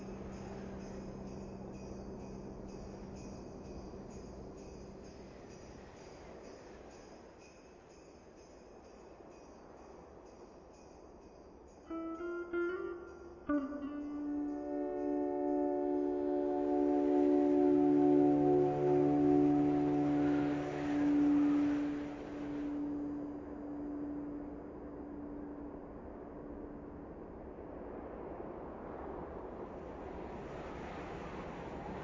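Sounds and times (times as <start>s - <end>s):
Christmas ambient music: 0.0s - 8.5s, 11.6s - 27.8s.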